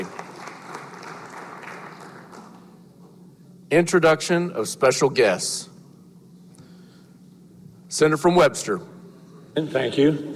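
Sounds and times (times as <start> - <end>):
audience at the Missouri State Capitol clapping to welcome students: 0.0 - 2.8
speech: 3.7 - 5.7, 8.0 - 8.9, 9.6 - 10.3.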